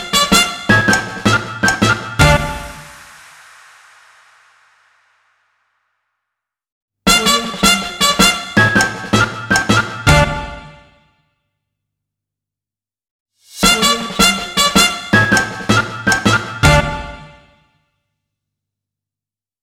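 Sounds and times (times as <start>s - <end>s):
cartoon logo jingle: 0.2s - 3.1s, 7.1s - 10.8s, 14.9s - 17.4s.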